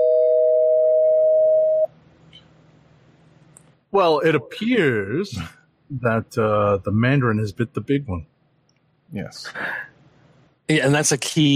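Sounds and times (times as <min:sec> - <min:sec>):
electronic bell tone for a spoiler warning: 0:00.0 - 0:01.9
speech: 0:04.0 - 0:08.3, 0:09.1 - 0:09.8, 0:10.7 - 0:11.5.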